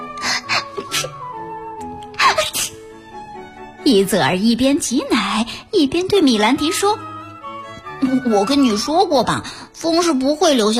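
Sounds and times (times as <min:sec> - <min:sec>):
repeated sneezing: 0:00.2 - 0:01.3
speech: 0:03.8 - 0:07.1, 0:08.1 - 0:10.7.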